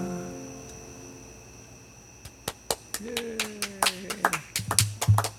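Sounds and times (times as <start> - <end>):
applause from a few pairs of hands: 2.2 - 5.3
faint voice: 3.0 - 4.4.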